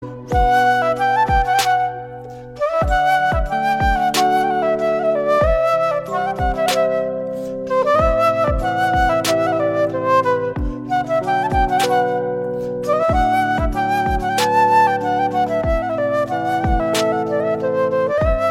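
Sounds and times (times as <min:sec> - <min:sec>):
flute: 0:00.0 - 0:18.4.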